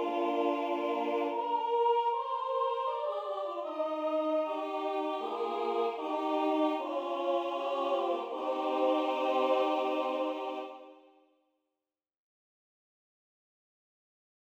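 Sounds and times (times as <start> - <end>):
carol singing from Bucovina: 0.0 - 11.0.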